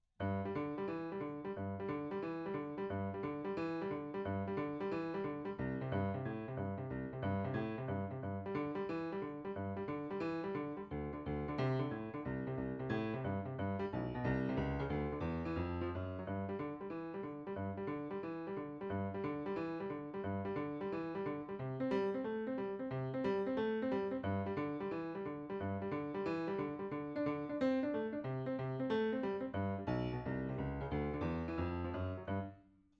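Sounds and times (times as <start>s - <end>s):
rock and roll piano: 0.2s - 32.5s.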